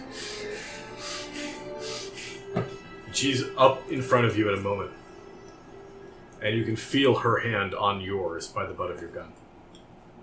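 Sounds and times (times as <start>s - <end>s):
person imitating heavy ragged breathing through the nose: 0.0s - 2.6s
speech: 2.6s - 5.0s, 6.4s - 9.4s.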